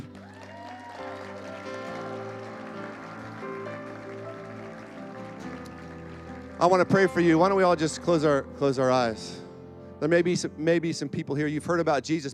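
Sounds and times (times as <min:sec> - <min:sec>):
crowd clapping: 0:00.0 - 0:08.4
sustained keyboard music: 0:00.9 - 0:12.3
speech: 0:06.6 - 0:09.4, 0:10.0 - 0:12.3.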